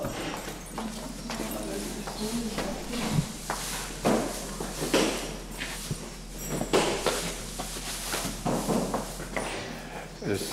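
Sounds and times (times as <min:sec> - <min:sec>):
steady low hum: 0:00.0 - 0:09.4
zebra hooves clopping in freshly fitted hoof shoes: 0:00.0 - 0:10.5.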